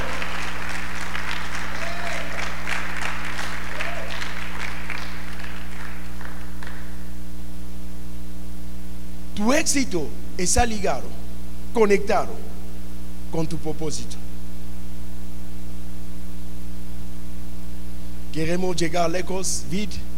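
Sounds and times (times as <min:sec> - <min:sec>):
audience applause: 0:00.0 - 0:07.0
constant low electrical hum: 0:00.0 - 0:20.1
speech: 0:09.4 - 0:11.2, 0:11.8 - 0:12.5, 0:13.3 - 0:14.2, 0:18.4 - 0:20.1.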